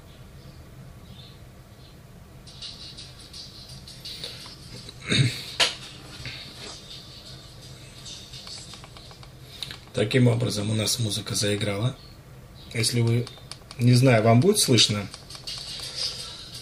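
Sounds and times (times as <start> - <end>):
double tap on wireless earbud: 2.5 - 5.0, 8.0 - 10.0, 12.7 - 16.6
speech: 10.0 - 12.1, 12.7 - 15.2.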